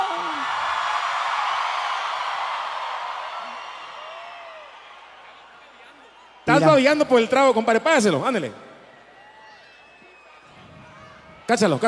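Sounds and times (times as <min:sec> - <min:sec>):
people shouting a cheer: 0:00.0 - 0:06.7, 0:09.1 - 0:11.6
speech: 0:06.6 - 0:08.6, 0:11.5 - 0:11.8.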